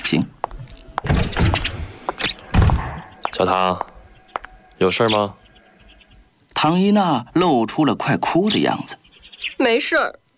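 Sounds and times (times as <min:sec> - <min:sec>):
speech: 0:00.1 - 0:00.4, 0:03.4 - 0:03.9, 0:04.8 - 0:05.4, 0:06.6 - 0:09.0, 0:09.6 - 0:10.2
footsteps at the door: 0:00.4 - 0:04.8.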